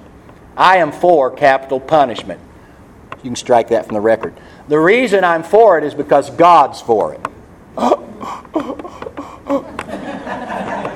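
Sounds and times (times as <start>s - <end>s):
speech: 0.6s - 2.5s, 3.2s - 8.0s
people gasping for breath: 7.8s - 9.9s
laughter: 7.8s - 10.9s.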